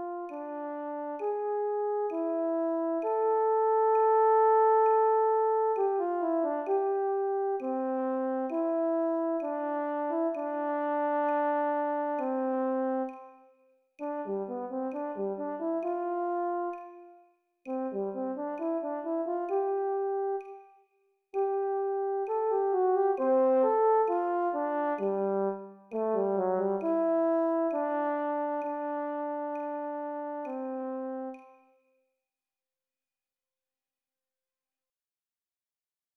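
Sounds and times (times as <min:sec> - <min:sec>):
lyrical horn melody: 0:00.0 - 0:13.3, 0:14.0 - 0:17.1, 0:17.7 - 0:20.5, 0:21.4 - 0:31.6.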